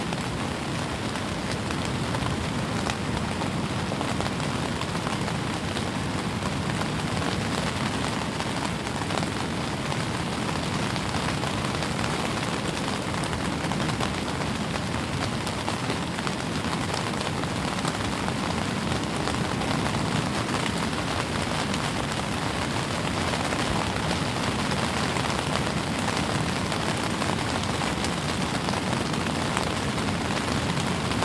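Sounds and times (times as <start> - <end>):
rain: 0.0 - 31.2.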